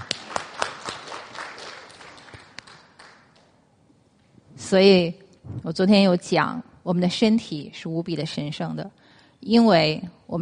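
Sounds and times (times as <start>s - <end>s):
audience clapping: 0.0s - 3.6s
speech: 4.7s - 10.4s.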